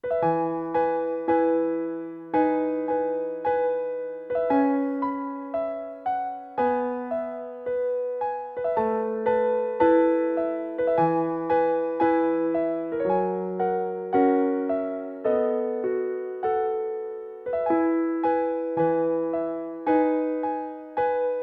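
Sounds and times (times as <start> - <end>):
Christmas song: 0.0 - 21.4.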